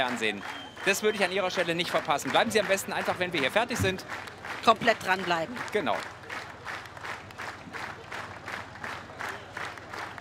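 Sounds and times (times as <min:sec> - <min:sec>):
speech: 0:00.0 - 0:06.2
audience applause: 0:00.0 - 0:10.1.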